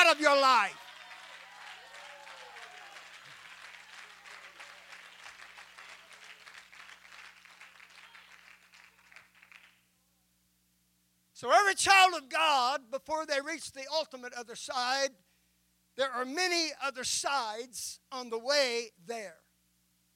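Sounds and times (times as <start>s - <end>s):
audience clapping: 0.0s - 9.9s
speech: 0.1s - 0.9s, 11.4s - 15.3s, 16.0s - 19.4s
low steady hum: 9.8s - 20.1s.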